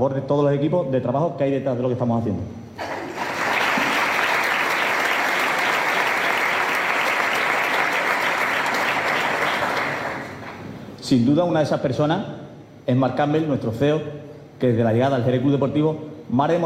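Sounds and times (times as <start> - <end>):
speech: 0.0 - 2.9, 11.1 - 16.6
audience applause: 2.8 - 10.6.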